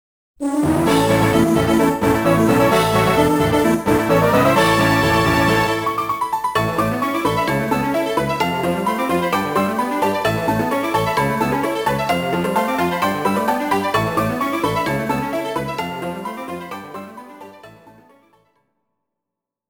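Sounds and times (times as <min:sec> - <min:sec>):
victory game music: 0:00.5 - 0:18.1.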